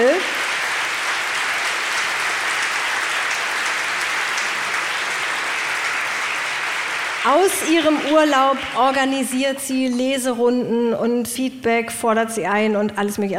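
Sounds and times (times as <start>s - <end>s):
applause: 0.0s - 10.0s
speech: 7.2s - 13.3s.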